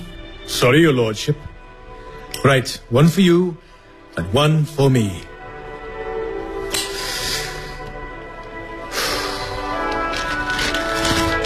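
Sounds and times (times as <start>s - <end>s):
speech: 0.5s - 1.5s, 2.4s - 3.6s, 4.2s - 5.3s
newspaper pages being turned over: 9.2s - 11.4s.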